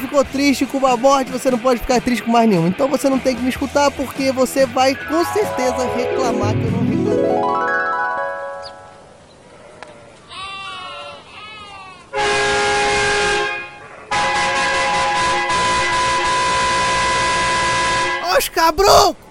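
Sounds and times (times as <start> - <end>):
speech: 0.1 - 7.6, 18.7 - 19.2
bus horn honking: 12.1 - 18.5.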